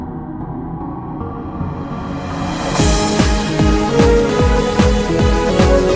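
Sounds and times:
instrumental music: 1.2 - 5.9.

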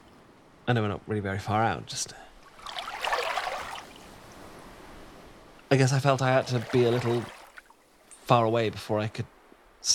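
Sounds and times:
speech: 0.7 - 2.3, 5.7 - 7.4, 8.3 - 9.9
water trickling: 2.4 - 4.3, 6.2 - 8.3.

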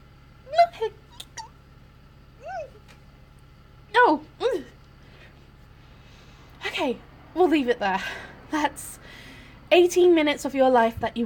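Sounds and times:
squeaky hiccups: 1.0 - 1.6
speech: 6.8 - 9.0, 9.7 - 11.2.

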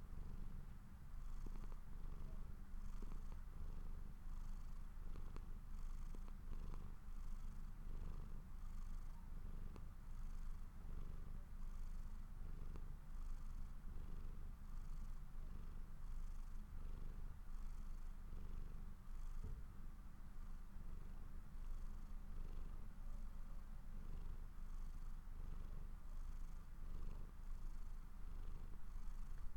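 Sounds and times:
domestic cat purring while falling asleep: 0.0 - 29.5.

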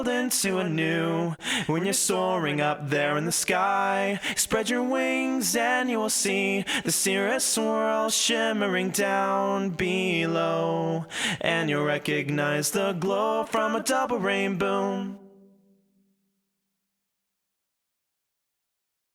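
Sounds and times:
person singing: 0.0 - 15.2.

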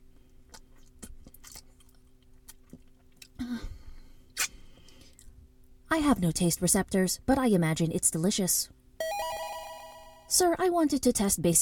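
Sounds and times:
wet licking and smacking of a smeared palm: 0.5 - 3.3
speech: 5.9 - 8.8, 10.3 - 11.6.

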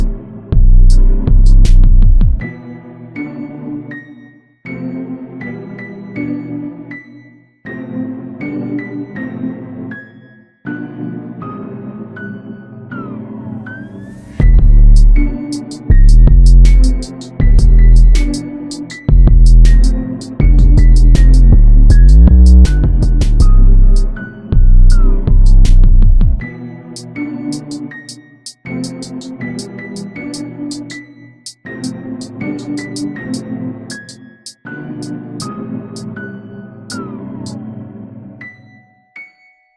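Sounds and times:
ominous trap hip hop beat: 0.0 - 2.4, 14.4 - 26.4, 27.0 - 27.8, 28.5 - 34.2.

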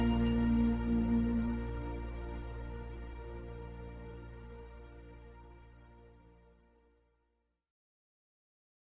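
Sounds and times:
karaoke duet singing: 0.0 - 2.0.

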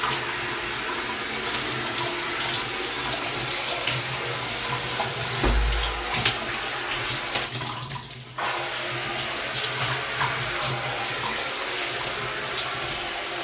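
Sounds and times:
morning shower running: 0.0 - 13.4
water bottle sounds: 5.4 - 6.6.

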